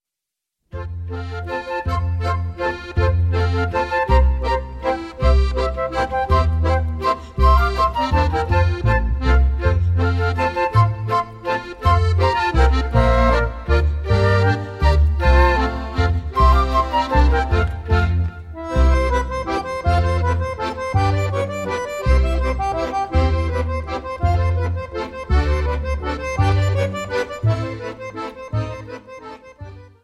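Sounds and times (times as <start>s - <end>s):
Volksmusik waltz: 0.7s - 30.0s.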